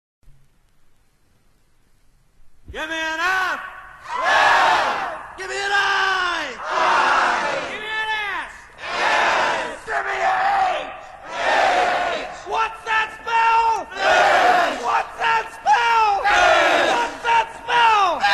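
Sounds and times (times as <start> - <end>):
people cheering: 4.0 - 18.3.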